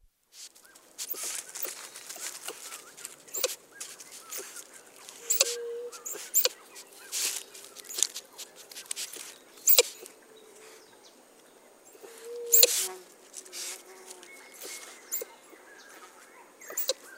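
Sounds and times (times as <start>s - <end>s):
White-nosed Coati in South America: 1.0s - 8.1s, 12.0s - 17.1s.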